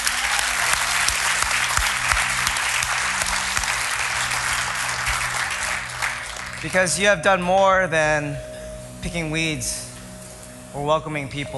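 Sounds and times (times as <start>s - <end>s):
audience applause: 0.0s - 6.8s
speech: 6.6s - 9.9s, 10.8s - 11.5s.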